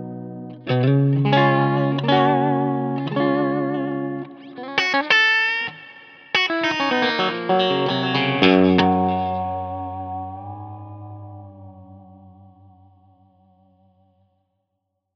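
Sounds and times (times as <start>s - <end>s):
Suhr Modern T electric guitar with clean breakup tone: 0.0s - 14.0s.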